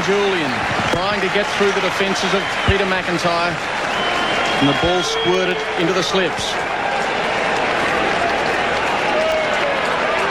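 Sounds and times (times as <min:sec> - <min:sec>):
whistles: 0:00.0 - 0:06.3
speech: 0:00.0 - 0:06.7
cricket stadium crowd cheering and applauding: 0:00.0 - 0:10.2.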